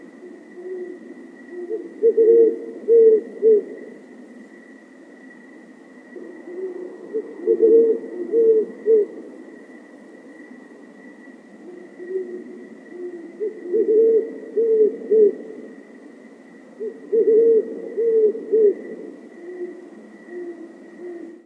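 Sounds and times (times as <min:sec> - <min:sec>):
great horned owl call: 0:00.0 - 0:03.8, 0:06.2 - 0:09.2, 0:11.6 - 0:15.5, 0:16.8 - 0:21.4.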